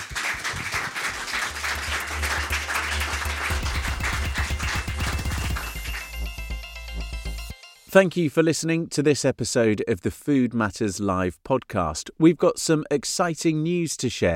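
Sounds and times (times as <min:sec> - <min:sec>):
audience applause for panelists: 0:00.0 - 0:07.3
speech: 0:07.9 - 0:14.3.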